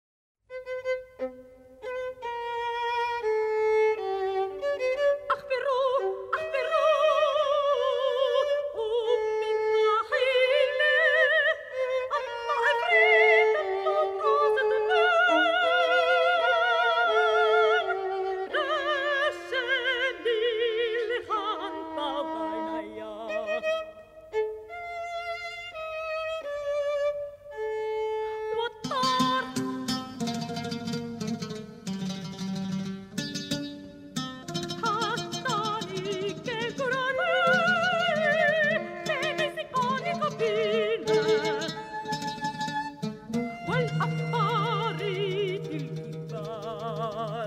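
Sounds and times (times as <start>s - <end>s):
oriental violin: 0.5s - 47.4s
oud: 0.5s - 47.4s
soprano singing: 3.9s - 24.4s, 28.4s - 30.7s, 34.5s - 47.4s.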